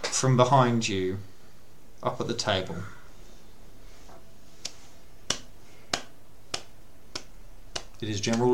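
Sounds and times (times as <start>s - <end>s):
speech: 0.2s - 1.3s, 2.0s - 3.0s, 8.0s - 8.5s
sarcastic slow clapping: 4.6s - 8.5s.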